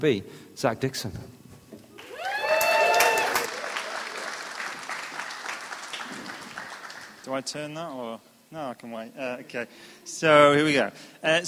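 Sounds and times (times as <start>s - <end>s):
speech: 0.0s - 1.4s, 7.3s - 11.4s
audience clapping: 2.0s - 7.4s.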